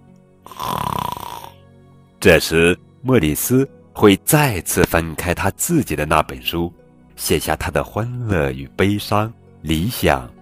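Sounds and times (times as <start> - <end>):
snoring: 0.4 - 1.6
speech: 2.2 - 10.3.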